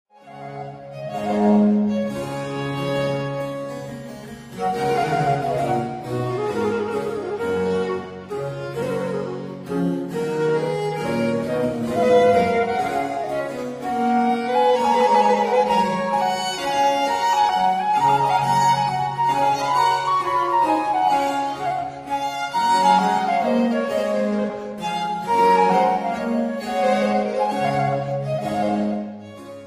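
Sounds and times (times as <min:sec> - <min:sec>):
two violins and continuo: 0:00.1 - 0:29.6.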